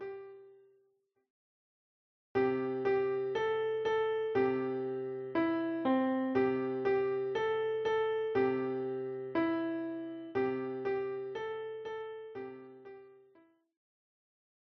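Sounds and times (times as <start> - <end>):
children's songs on piano: 2.4 - 13.3.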